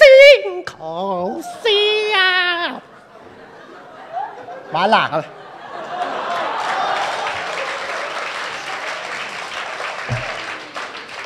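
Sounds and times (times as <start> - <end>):
speech: 0.6 - 1.7, 4.7 - 5.4
laughter: 2.6 - 9.1
audience applause at a Chinese opera performance: 5.8 - 11.2.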